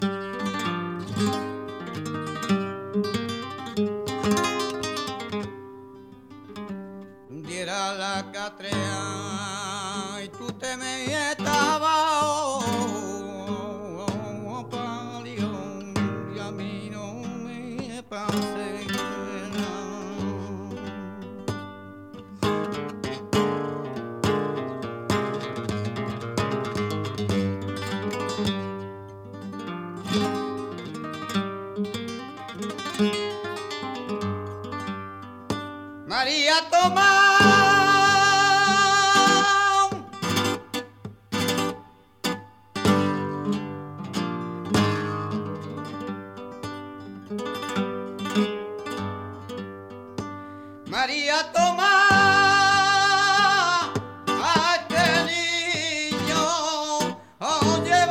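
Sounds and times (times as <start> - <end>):
solea flamenco music: 0.0 - 58.0.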